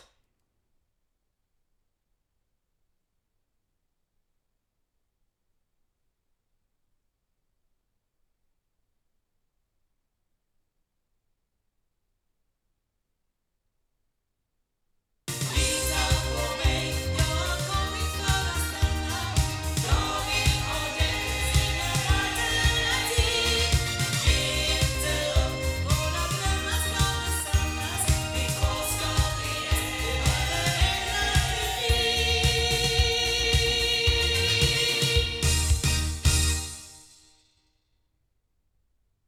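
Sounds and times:
loudspeakers: 15.4 - 36.5.

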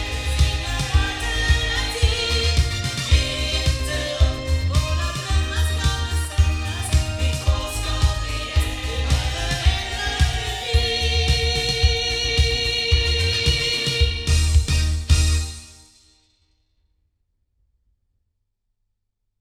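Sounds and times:
loudspeakers: 0.0 - 15.5.

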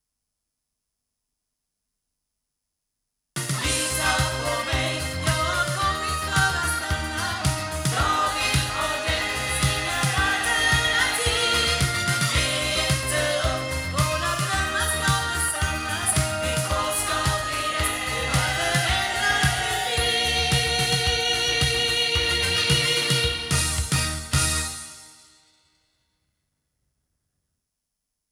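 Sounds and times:
sound from Shure Beta58A microphone through loudspeakers: 3.4 - 24.7.

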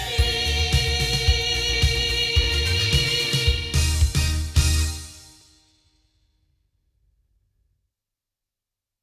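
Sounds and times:
loudspeakers: 0.0 - 5.0.

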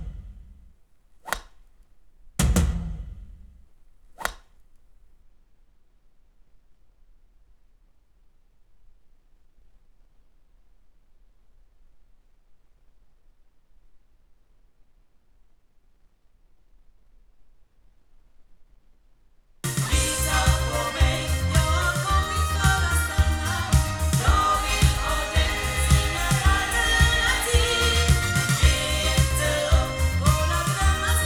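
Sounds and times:
loudspeakers: 19.7 - 31.2.

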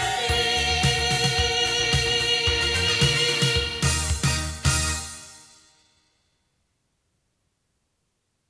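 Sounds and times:
loudspeakers: 0.0 - 5.0.

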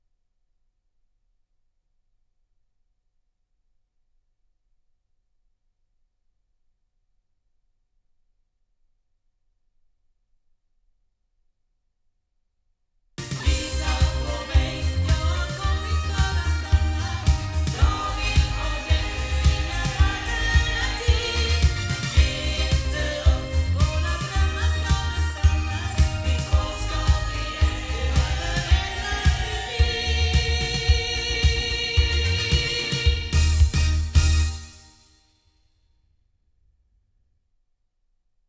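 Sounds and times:
loudspeakers: 13.2 - 34.5.

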